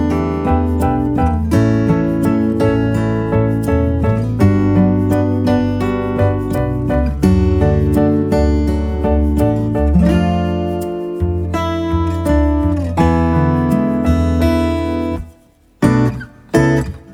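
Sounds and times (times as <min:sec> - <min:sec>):
acoustic music: 0:00.0 - 0:17.1.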